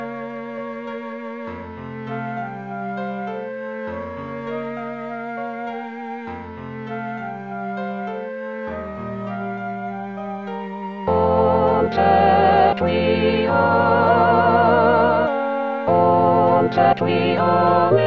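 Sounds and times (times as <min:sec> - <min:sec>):
full choir singing: 0:11.1 - 0:18.0.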